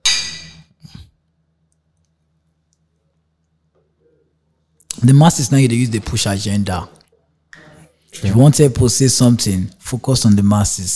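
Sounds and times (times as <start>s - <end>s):
glasses clinking: 0.0s - 0.7s
speech: 5.0s - 7.0s, 8.1s - 10.9s.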